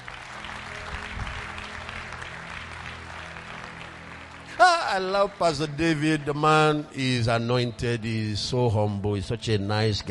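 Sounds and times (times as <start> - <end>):
audience clapping: 0.0 - 6.6
speech: 4.6 - 10.0.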